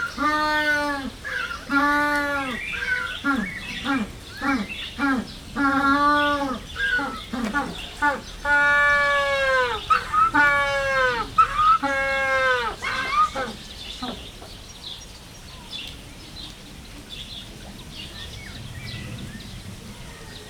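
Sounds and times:
spectacled penguin calling in a zoo: 0:00.0 - 0:13.6.

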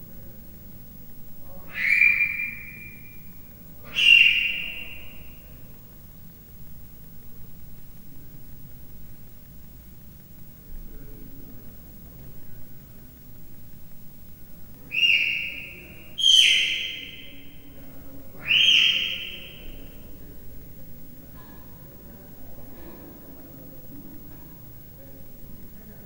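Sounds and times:
three-month-old captive leopard cub chirping in a zoo: 0:01.7 - 0:03.0, 0:03.9 - 0:05.2, 0:14.9 - 0:17.5, 0:18.4 - 0:19.9.

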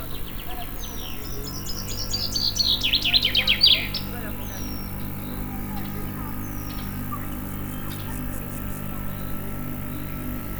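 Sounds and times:
chaffinch singing: 0:00.0 - 0:10.5
pond frogs croaking: 0:00.0 - 0:10.5.

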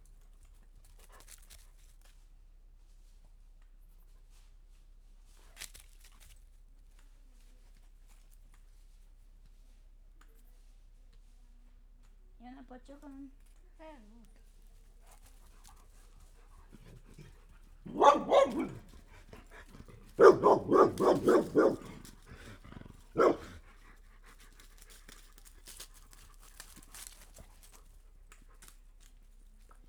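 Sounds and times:
village dogs barking: 0:16.8 - 0:23.6.

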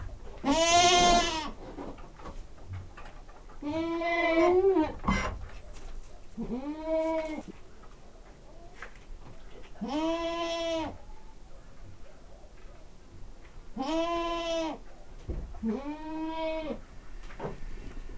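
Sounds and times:
domestic goat bleating in a farmyard stable: 0:00.4 - 0:01.6, 0:03.6 - 0:05.1, 0:06.4 - 0:07.4, 0:09.8 - 0:11.0, 0:13.8 - 0:14.8, 0:15.6 - 0:16.8.

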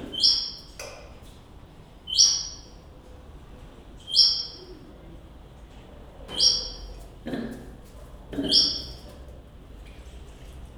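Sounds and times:
high-pitched call of a squirrel monkey at Kecskemét zoo: 0:00.1 - 0:00.7, 0:02.1 - 0:02.7, 0:04.1 - 0:04.7, 0:06.3 - 0:06.9, 0:08.4 - 0:09.0.

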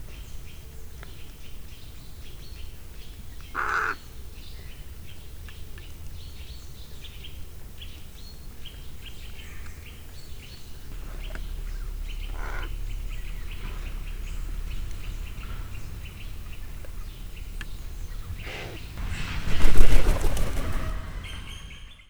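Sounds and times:
hooded crow croaking on the ground: 0:03.6 - 0:04.0, 0:11.0 - 0:19.1
hooded crow taking off: 0:10.9 - 0:22.0.

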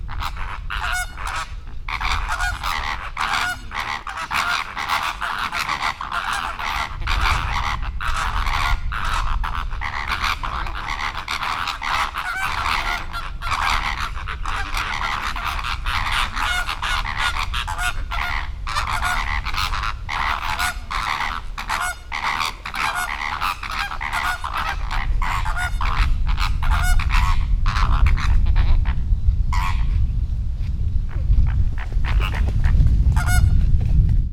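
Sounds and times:
greater flamingo and Chilean flamingo calling: 0:00.0 - 0:29.9, 0:31.5 - 0:32.5, 0:33.2 - 0:33.5
wind: 0:00.0 - 0:34.3.

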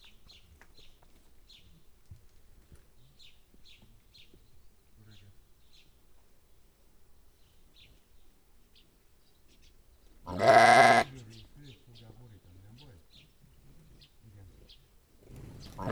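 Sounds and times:
bleating of a flock of sheep running off: 0:10.3 - 0:11.1, 0:15.3 - 0:15.9.

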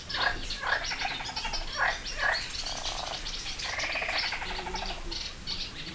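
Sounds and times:
frogs at Hortobágy fish ponds: 0:00.0 - 0:05.8.

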